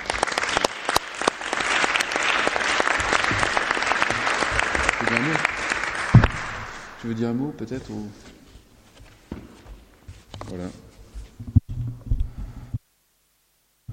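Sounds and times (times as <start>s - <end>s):
audience applause: 0.0s - 7.0s
speech: 7.0s - 8.3s, 10.6s - 10.8s.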